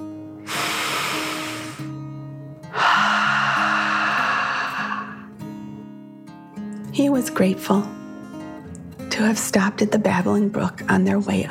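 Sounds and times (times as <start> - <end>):
deep breath in and out: 0.4 - 1.9, 2.6 - 5.4
speech: 7.0 - 8.0, 9.2 - 11.4.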